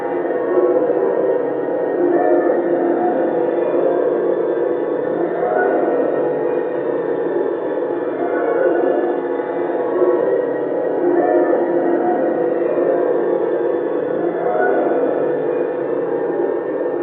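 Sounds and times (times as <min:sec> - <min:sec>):
planet background ambience: 0:00.0 - 0:17.0.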